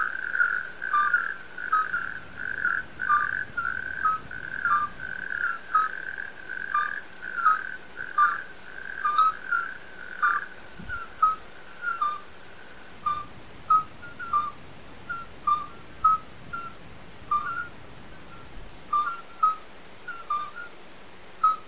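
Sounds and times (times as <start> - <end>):
chorus of midwife toads calling: 0.0 - 20.8, 21.4 - 21.6.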